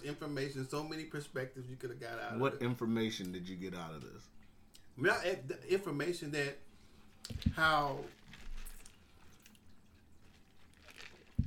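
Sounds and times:
speech: 0.0 - 4.4, 5.0 - 8.2
person sipping a beverage: 7.0 - 11.4.

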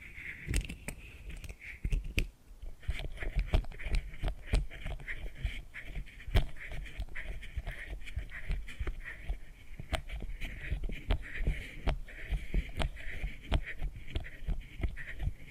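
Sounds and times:
soft steady rustling scratch: 0.0 - 2.0, 2.7 - 15.5
quick irregular tapping and clicks: 0.5 - 5.4, 6.3 - 15.4.

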